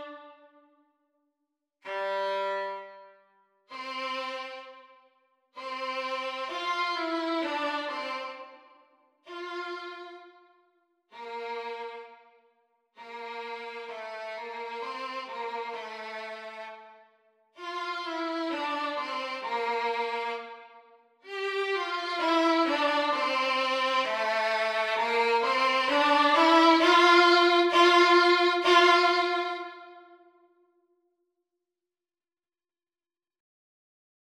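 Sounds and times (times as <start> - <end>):
violin duet practice: 0.0 - 0.5, 1.8 - 4.9, 5.6 - 10.4, 11.1 - 12.2, 13.0 - 17.0, 17.6 - 30.2.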